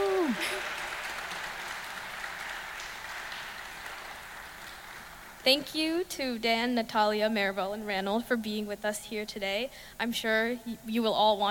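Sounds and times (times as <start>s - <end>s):
audience clapping: 0.0s - 5.8s
speech: 5.4s - 11.4s.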